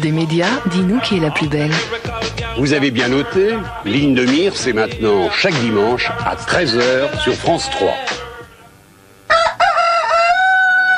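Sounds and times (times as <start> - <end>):
speech: 0.0 - 8.2
rooster crowing: 9.3 - 10.9.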